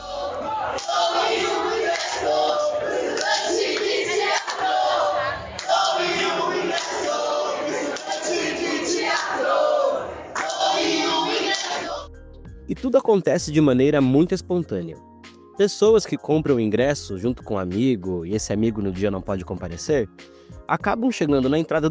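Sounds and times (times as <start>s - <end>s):
theater students chanting their war cry: 0.0s - 12.1s
speech: 12.7s - 21.8s.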